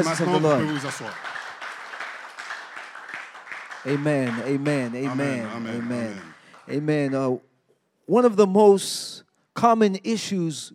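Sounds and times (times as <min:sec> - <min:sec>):
speech: 0:00.0 - 0:01.3, 0:03.8 - 0:07.5, 0:08.1 - 0:10.7
audience clapping hands rapidly: 0:00.0 - 0:07.4.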